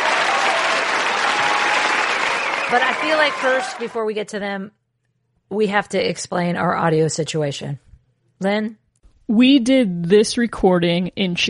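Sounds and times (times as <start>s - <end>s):
crowd noise sound effect: 0.0s - 4.0s
speech: 2.7s - 4.8s, 5.5s - 11.4s.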